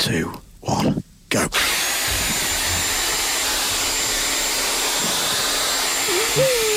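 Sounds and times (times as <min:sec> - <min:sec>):
speech: 0:00.0 - 0:01.6, 0:06.4 - 0:06.6
electric power drill running: 0:01.6 - 0:06.7.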